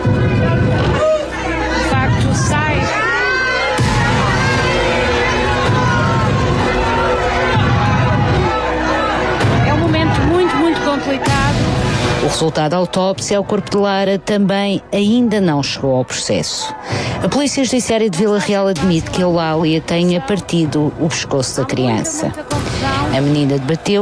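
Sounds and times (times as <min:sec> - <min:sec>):
angry crowd shouting insults: 0:00.0 - 0:21.1
speech: 0:12.4 - 0:24.0.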